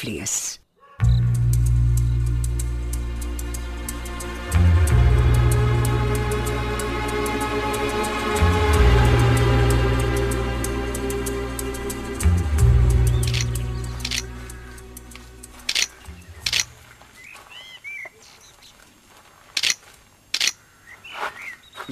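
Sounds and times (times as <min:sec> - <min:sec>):
speech: 0:00.0 - 0:01.2
birds chirping softly: 0:00.0 - 0:04.4, 0:12.8 - 0:21.8
low rumble: 0:01.0 - 0:17.2
camera shutter clicking: 0:13.3 - 0:14.3, 0:15.6 - 0:16.7, 0:20.4 - 0:20.6.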